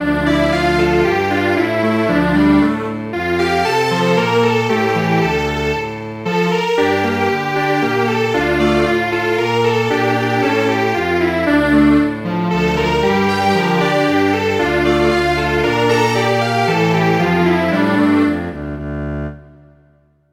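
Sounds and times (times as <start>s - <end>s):
string quartet playing: 0.0s - 19.0s.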